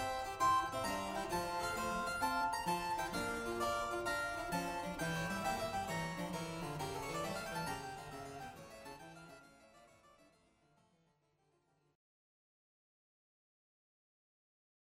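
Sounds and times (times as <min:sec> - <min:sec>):
fugue: 0:00.0 - 0:09.4.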